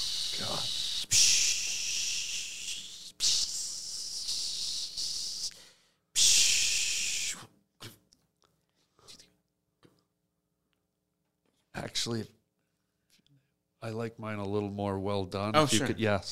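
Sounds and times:
person vocally imitating sizzling steak: 0:00.0 - 0:05.5, 0:06.2 - 0:08.0
speech: 0:12.0 - 0:12.4, 0:13.8 - 0:16.2.

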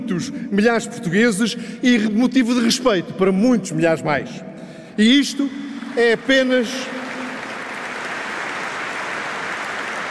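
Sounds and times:
speech: 0:00.1 - 0:07.0
audience applause: 0:05.8 - 0:10.1.

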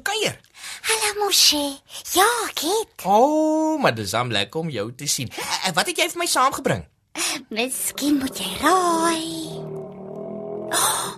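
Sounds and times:
speech: 0:00.2 - 0:09.6
voice imitating a hungry stomach growl: 0:07.9 - 0:11.1.

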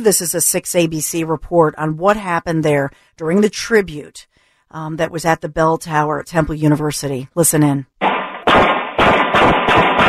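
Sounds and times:
speech: 0:00.0 - 0:08.7
gunshots: 0:08.0 - 0:10.0.

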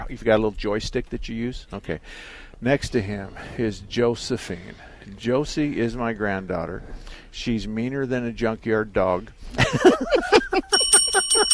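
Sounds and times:
speech: 0:00.0 - 0:10.4, 0:11.1 - 0:11.5
laughter: 0:09.6 - 0:11.5
lie buzzer bell ding: 0:10.7 - 0:11.5.

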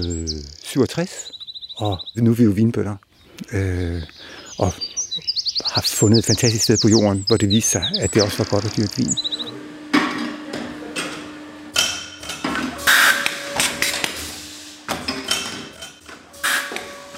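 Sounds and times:
speech: 0:00.0 - 0:09.5
steady mechanical hum: 0:03.5 - 0:17.1
wine bottle labelling machine: 0:05.9 - 0:17.1
hissing burst: 0:12.8 - 0:15.0, 0:16.4 - 0:17.1.

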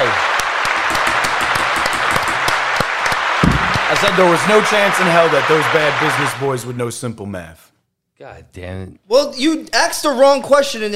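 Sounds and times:
clapping applause sound effect: 0:00.0 - 0:06.6
speech: 0:04.0 - 0:10.9.

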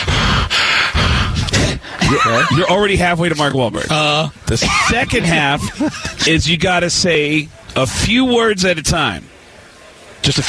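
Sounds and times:
heavy breathing impression: 0:00.0 - 0:02.4
laughter: 0:01.9 - 0:03.2, 0:04.5 - 0:06.7
speech: 0:02.1 - 0:09.3, 0:10.2 - 0:10.4.

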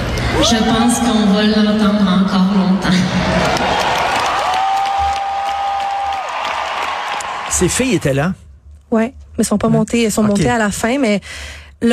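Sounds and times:
speech: 0:00.4 - 0:03.6, 0:07.6 - 0:11.9
crowd ovation and applause: 0:03.2 - 0:07.9.

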